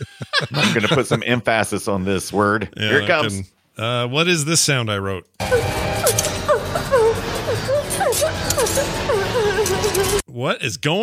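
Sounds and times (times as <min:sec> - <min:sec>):
laughter: 0:00.0 - 0:01.8
speech: 0:00.5 - 0:06.2, 0:10.4 - 0:11.0
knife blades scraping across a metal pipe: 0:05.5 - 0:10.2.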